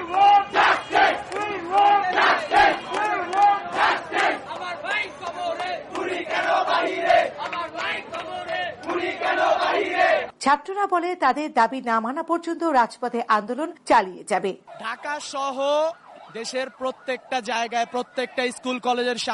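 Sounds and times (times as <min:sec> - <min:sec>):
student protesters chanting slogans in the street: 0:00.0 - 0:10.3
speech: 0:10.4 - 0:19.3.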